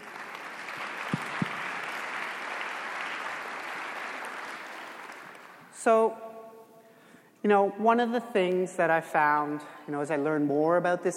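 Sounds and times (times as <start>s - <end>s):
audience applause: 0.0s - 5.6s
speech: 5.8s - 6.2s, 7.4s - 11.1s.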